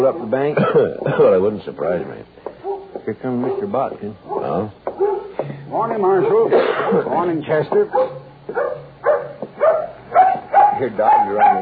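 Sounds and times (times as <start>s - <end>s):
speech: 0.0s - 2.4s, 3.0s - 4.8s, 5.4s - 8.7s, 10.8s - 11.5s
dog yelping and whining: 4.3s - 5.4s, 8.0s - 11.5s.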